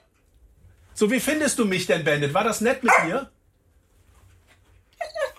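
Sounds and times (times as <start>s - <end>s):
speech: 1.0s - 3.4s
dog whimpering: 5.0s - 5.3s.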